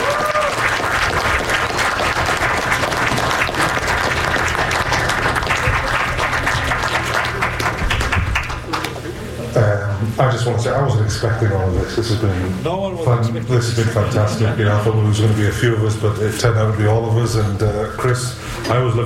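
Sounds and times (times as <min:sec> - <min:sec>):
audience applause: 0:00.0 - 0:09.2
speech: 0:10.4 - 0:19.0.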